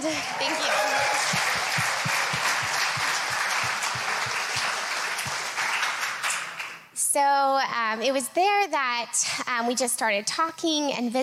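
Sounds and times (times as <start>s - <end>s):
audience applauding: 0.0s - 6.9s
speech: 7.2s - 11.2s.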